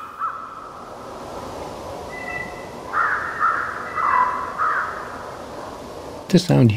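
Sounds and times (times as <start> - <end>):
wolves howling: 2.1 - 5.8.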